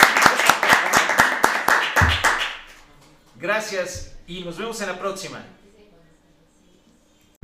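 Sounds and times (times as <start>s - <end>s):
applause: 0.0s - 3.3s
speech: 3.5s - 5.6s.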